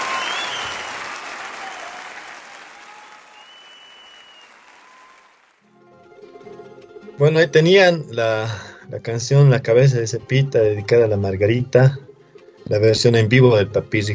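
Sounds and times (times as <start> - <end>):
audience applause: 0.0 - 5.6
speech: 7.2 - 12.0, 12.7 - 14.1.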